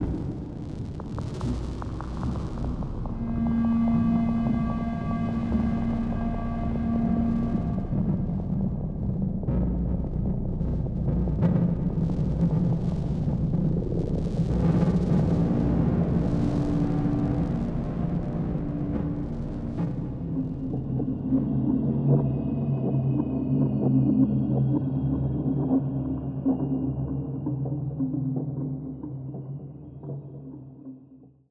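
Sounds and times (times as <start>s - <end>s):
suspense music: 0.1s - 30.9s.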